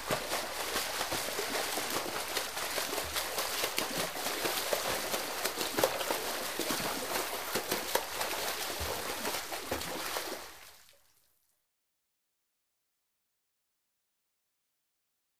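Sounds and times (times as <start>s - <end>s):
person swimming laps: 0.0s - 10.9s.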